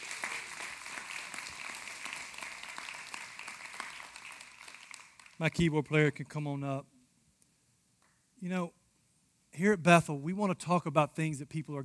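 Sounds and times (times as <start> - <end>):
audience applause: 0.0 - 5.5
speech: 5.4 - 6.9, 8.4 - 8.8, 9.6 - 11.8.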